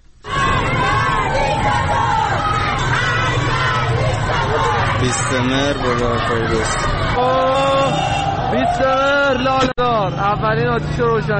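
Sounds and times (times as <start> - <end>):
protest crowd shouting and chanting: 0.3 - 8.6
speech: 5.0 - 11.3.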